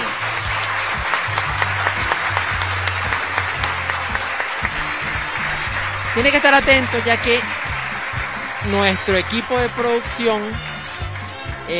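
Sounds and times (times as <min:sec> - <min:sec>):
audience applause: 0:00.0 - 0:11.7
speech: 0:06.2 - 0:07.6, 0:08.6 - 0:10.7.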